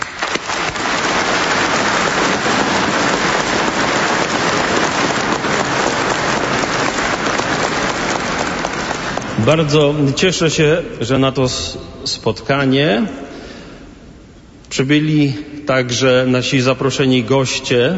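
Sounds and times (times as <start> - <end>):
adults applauding to welcome children: 0.0 - 10.2
speech: 9.5 - 13.2, 14.8 - 17.9.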